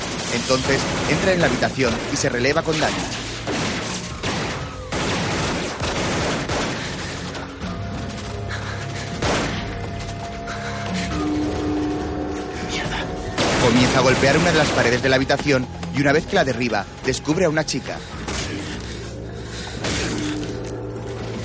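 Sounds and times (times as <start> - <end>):
gunfire in a corridor shootout from the 1999 action thriller The Corruptor: 0.0 - 8.4, 13.4 - 15.1
speech: 0.3 - 3.2, 14.0 - 18.2
sustained musical tone: 9.7 - 21.4.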